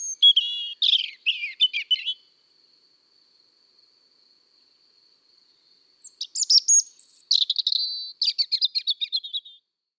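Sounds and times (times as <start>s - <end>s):
European robin singing: 0.0s - 2.2s, 6.0s - 9.6s.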